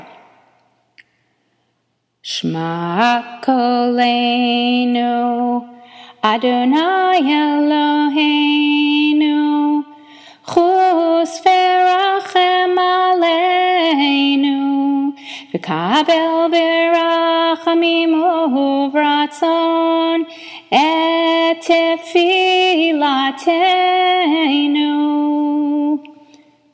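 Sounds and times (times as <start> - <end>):
vocal harmony singing: 2.3 - 26.4.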